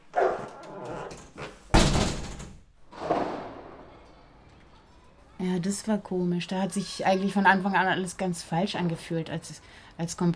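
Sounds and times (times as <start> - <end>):
pet dog barking loudly: 0.1 - 0.6
sharp slam-like thump: 3.0 - 3.7
speech: 5.6 - 10.3.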